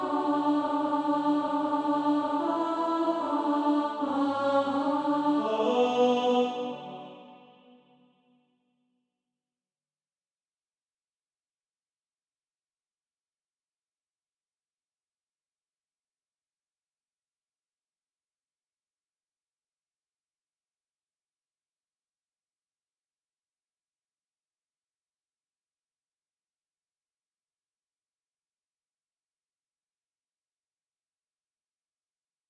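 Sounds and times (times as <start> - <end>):
alto voice singing practice music: 0.0 - 7.9.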